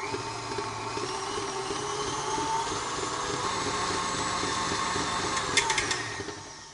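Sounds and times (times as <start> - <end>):
electric mixer creaming cookie batter at high speed: 0.0 - 6.7
mixer beaters clattering: 4.6 - 6.4.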